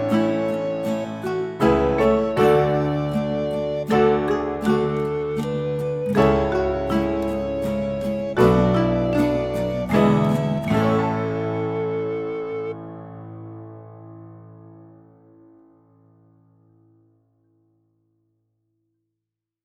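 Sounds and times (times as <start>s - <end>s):
marimba and guitar lullaby: 0.0s - 12.8s.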